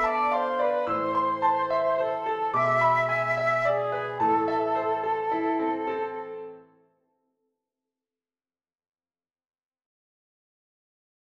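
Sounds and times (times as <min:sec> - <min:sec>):
flute and piano minuet: 0:00.0 - 0:06.9.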